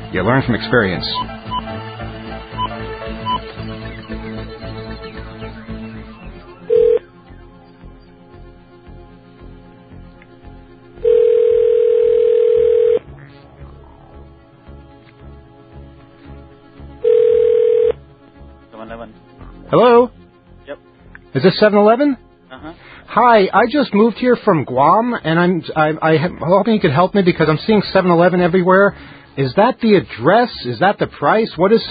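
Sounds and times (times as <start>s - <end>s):
speech: 0.1s - 1.7s, 21.4s - 22.2s, 23.2s - 31.8s
telephone line dial tone: 6.7s - 7.0s, 11.0s - 13.0s, 17.0s - 18.0s.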